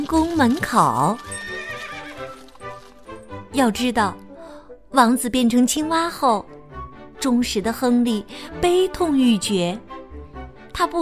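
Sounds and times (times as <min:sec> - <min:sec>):
horse-drawn carriage hooves clip-clopping: 0:00.0 - 0:03.3
speech: 0:00.1 - 0:01.4, 0:03.6 - 0:04.2, 0:04.9 - 0:06.5, 0:07.2 - 0:09.9, 0:10.8 - 0:10.9.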